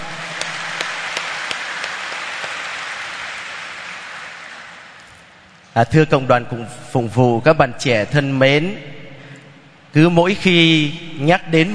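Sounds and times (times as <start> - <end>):
audience applause: 0.0 - 5.2
speech: 5.8 - 8.9, 10.0 - 11.7.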